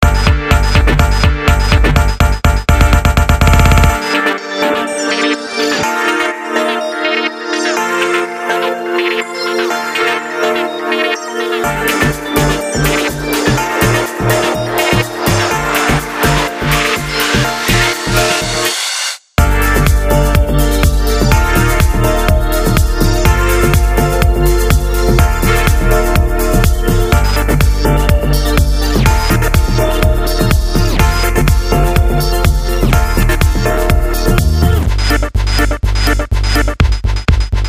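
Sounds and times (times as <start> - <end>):
house music beat: 0.0 - 37.6.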